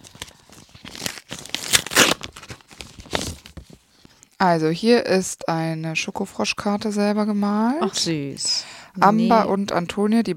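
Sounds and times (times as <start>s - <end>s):
fan mail envelope being torn open: 0.0s - 3.8s
speech: 4.4s - 10.3s.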